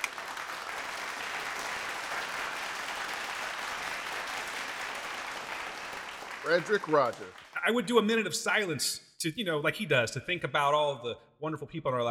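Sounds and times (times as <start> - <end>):
crowd applause: 0.0 - 7.8
speech: 6.5 - 12.0.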